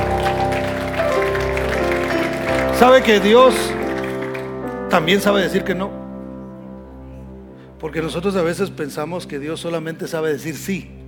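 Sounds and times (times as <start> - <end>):
audience applause: 0.0 - 5.6
speech: 2.8 - 3.8, 4.9 - 6.0, 7.8 - 11.0.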